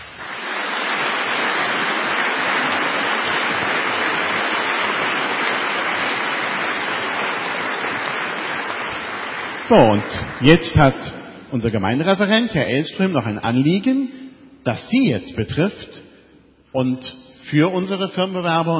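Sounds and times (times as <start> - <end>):
audience applause: 0.0 - 11.1
speech: 9.7 - 16.0, 16.7 - 18.7.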